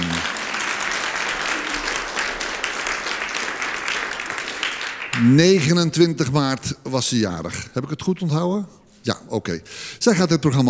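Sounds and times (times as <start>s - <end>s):
large audience applause: 0.0s - 5.4s
speech: 5.2s - 10.6s.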